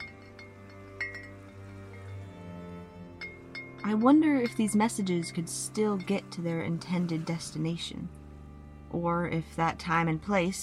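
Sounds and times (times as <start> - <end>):
hanging glass bottles chiming against each other: 0.0 - 7.2
speech: 3.8 - 8.2, 9.0 - 10.6.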